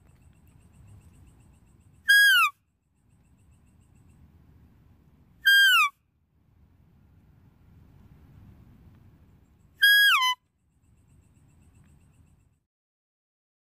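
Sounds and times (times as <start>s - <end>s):
deer whistled calls: 2.0s - 2.6s, 5.4s - 5.9s, 9.8s - 10.4s.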